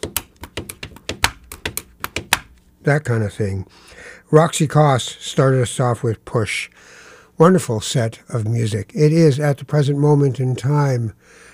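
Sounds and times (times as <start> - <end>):
pen tapping rhythmically on paper: 0.0 - 2.6
speech: 2.8 - 11.5.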